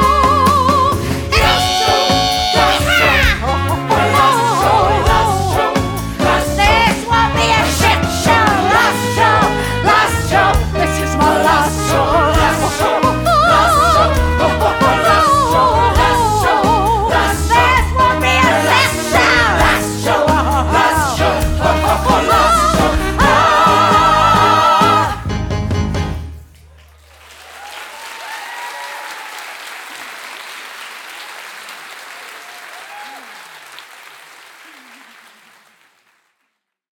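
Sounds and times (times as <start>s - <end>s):
live musical theatre character singing voice: 0.0s - 25.2s.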